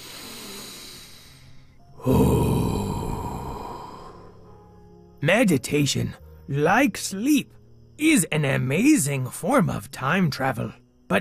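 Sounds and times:
deep breath taken at the start of a meditation: 0.0s - 4.6s
speech: 2.0s - 2.3s, 5.2s - 11.1s.

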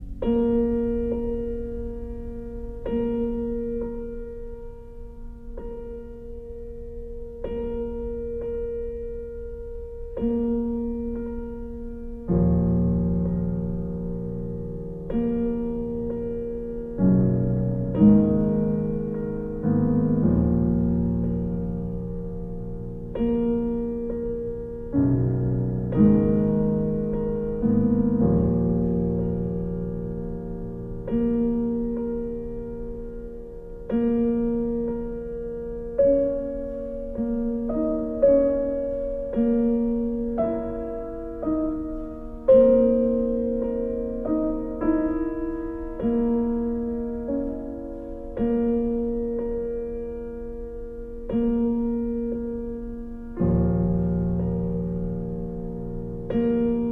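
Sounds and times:
piano: 0.0s - 56.8s.

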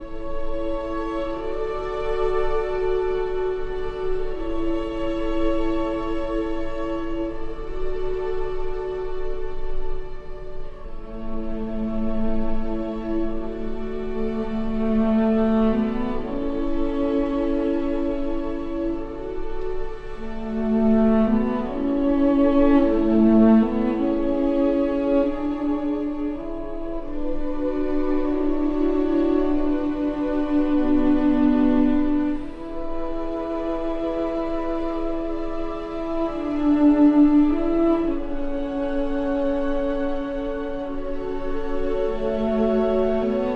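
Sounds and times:
cello and strings: 0.0s - 43.5s.

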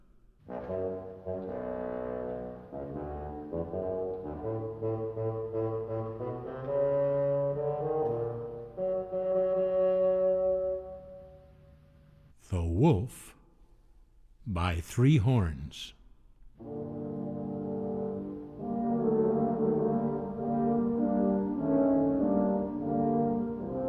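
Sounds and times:
bassoon playing a melody: 0.4s - 11.5s, 16.6s - 23.8s
speech: 0.7s - 1.8s, 12.8s - 13.3s, 14.6s - 16.0s.

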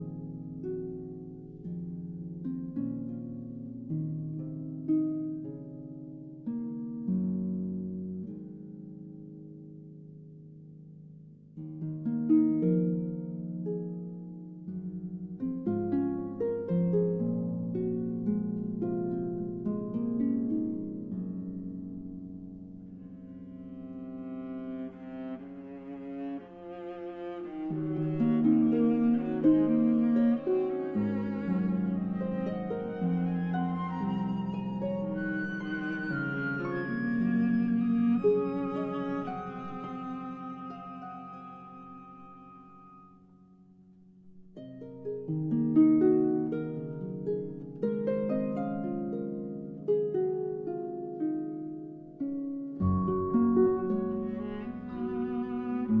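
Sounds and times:
harp concerto lullaby: 0.0s - 55.9s.

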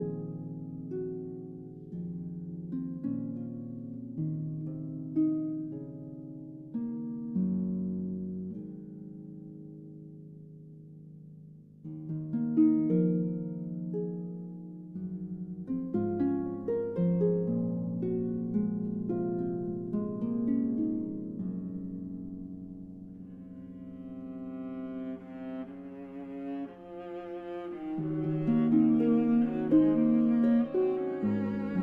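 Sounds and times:
harp concerto lullaby: 0.0s - 31.8s.

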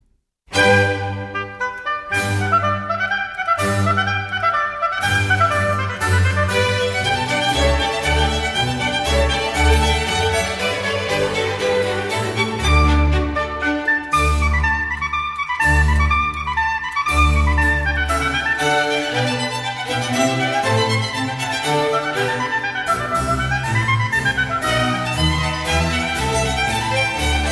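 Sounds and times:
oboe, strings and continuo sinfonia in G: 0.5s - 27.5s.

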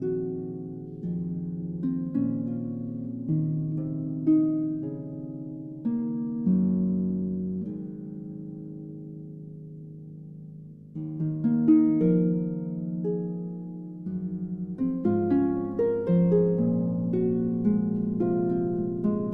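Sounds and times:
harp concerto lullaby: 0.0s - 19.3s.

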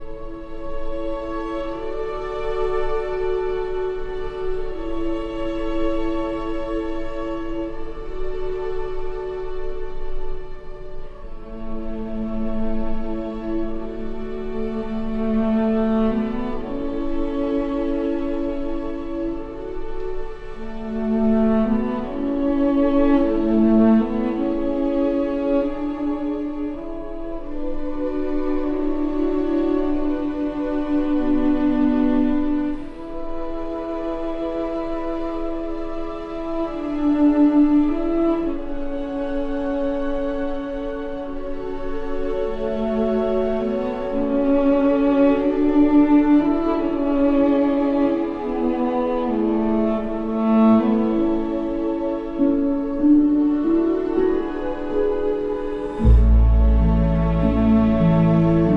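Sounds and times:
cello and strings: 0.0s - 58.7s.

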